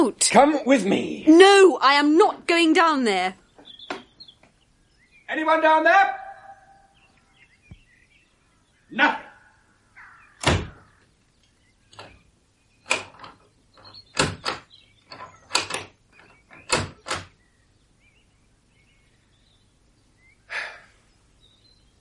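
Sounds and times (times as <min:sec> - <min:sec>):
speech: 0:00.0 - 0:03.4, 0:05.3 - 0:06.2, 0:08.9 - 0:09.2
cellar door opening: 0:03.6 - 0:04.3, 0:10.4 - 0:11.1, 0:11.9 - 0:17.4.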